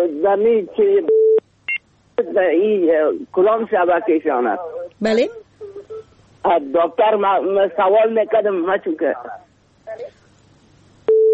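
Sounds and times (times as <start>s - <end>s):
speech: 0.2s - 1.2s, 2.2s - 5.4s, 6.4s - 10.2s
dual-tone telephone dialing beeps: 1.1s - 1.8s, 11.1s - 11.3s
telephone line tone: 11.1s - 11.3s.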